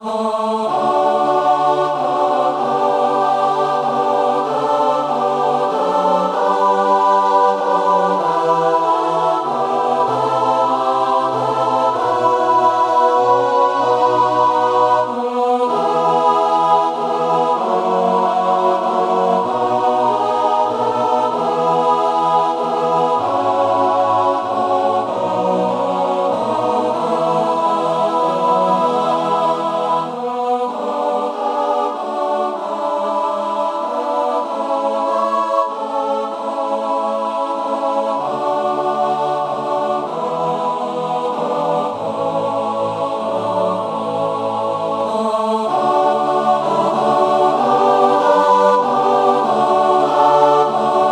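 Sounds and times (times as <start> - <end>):
four-part mixed choir singing: 0.0 - 51.1.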